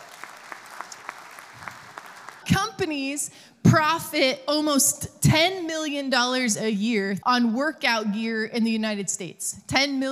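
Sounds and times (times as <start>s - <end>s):
audience applause: 0.0s - 2.5s
speech: 2.5s - 10.0s.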